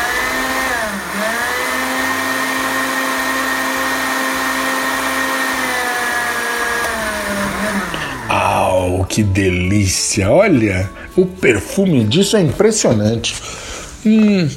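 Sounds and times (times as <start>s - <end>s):
blender blending thick ingredients into a paste: 0.0s - 8.9s
speech: 9.2s - 14.5s.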